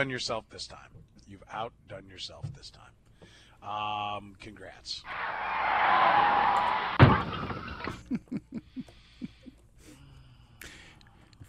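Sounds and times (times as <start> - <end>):
speech: 0.0 - 7.5
car crash sound effect: 5.1 - 8.1.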